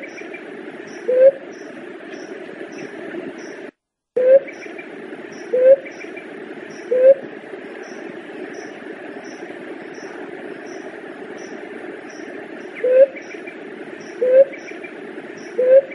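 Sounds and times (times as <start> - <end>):
Leptotila dove cooing: 0.9 - 1.4, 4.2 - 4.7, 5.4 - 6.0, 6.8 - 7.3, 12.8 - 13.3, 14.0 - 14.6, 15.4 - 15.9.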